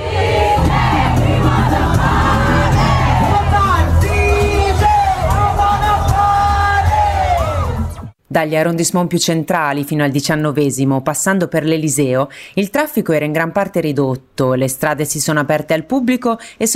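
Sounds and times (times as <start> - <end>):
roar of many voices in city streets: 0.0 - 4.7
yells and whoops: 2.4 - 8.0
speech: 8.4 - 16.7.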